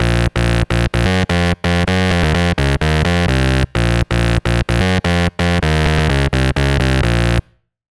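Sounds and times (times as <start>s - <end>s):
bass: 0.0s - 7.6s.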